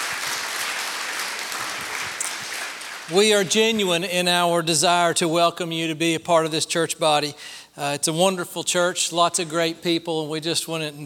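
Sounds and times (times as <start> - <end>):
crowd applauding: 0.0 - 3.9
speech: 3.1 - 11.0.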